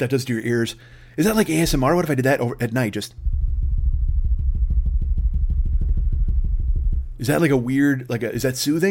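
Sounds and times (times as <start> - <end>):
speech: 0.0 - 3.3, 7.2 - 8.8
voice imitating a drum roll: 3.2 - 7.9.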